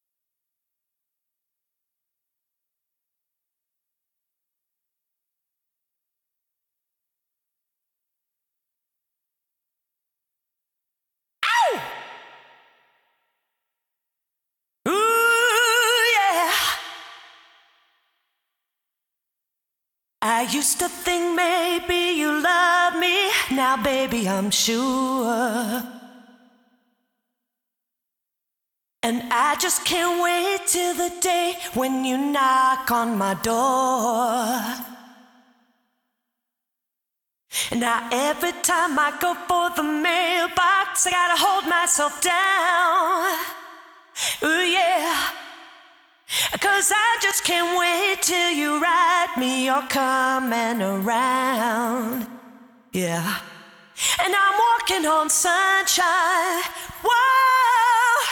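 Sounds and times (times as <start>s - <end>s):
person singing: 11.4s - 12.6s, 14.9s - 17.2s, 20.2s - 26.0s, 29.0s - 34.9s, 37.6s - 43.5s, 44.2s - 45.5s, 46.4s - 52.3s, 53.0s - 58.3s.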